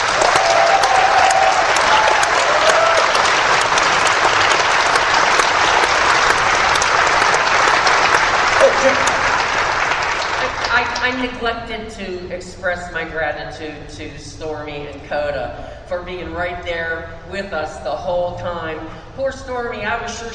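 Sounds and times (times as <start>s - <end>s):
audience applause: 0.0s - 11.0s
speech: 11.0s - 20.3s.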